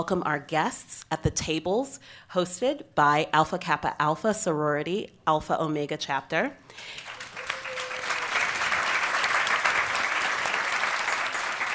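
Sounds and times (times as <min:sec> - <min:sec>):
speech: 0:00.0 - 0:07.2
audience applause: 0:06.8 - 0:11.7.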